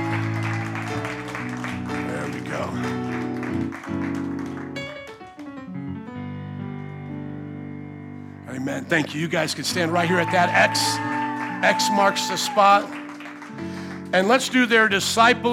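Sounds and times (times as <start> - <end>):
audience clapping: 0.0 - 5.8, 9.4 - 15.5
speech: 8.6 - 13.0, 14.1 - 15.5.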